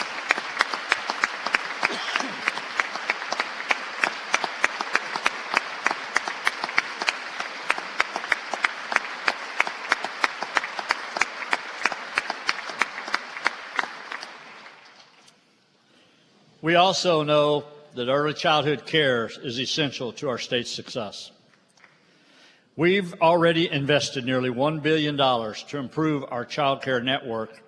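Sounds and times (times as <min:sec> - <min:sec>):
sustained audience applause: 0:00.0 - 0:15.2
speech: 0:16.7 - 0:21.4, 0:22.8 - 0:27.6.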